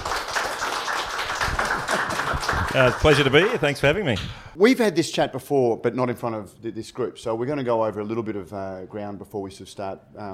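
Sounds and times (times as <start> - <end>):
round of applause: 0.0 - 3.8
speech: 2.7 - 10.3.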